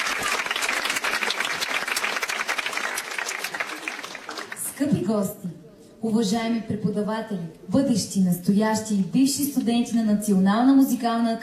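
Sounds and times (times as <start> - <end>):
audience applause as performer takes stage: 0.0 - 4.8
speech: 4.8 - 11.4.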